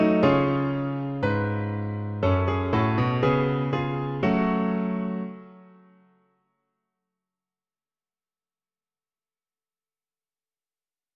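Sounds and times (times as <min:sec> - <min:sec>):
piano: 0:00.0 - 0:06.6.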